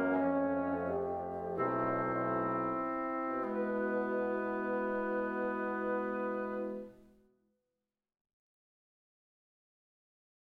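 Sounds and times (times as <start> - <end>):
quintet playing andante tranquillo: 0.0 - 7.2.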